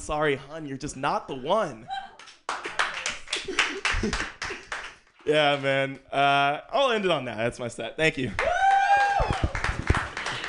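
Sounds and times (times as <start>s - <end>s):
speech: 0.0s - 2.0s, 3.4s - 4.4s, 5.2s - 8.5s
audience clapping: 2.2s - 5.3s, 8.3s - 10.4s.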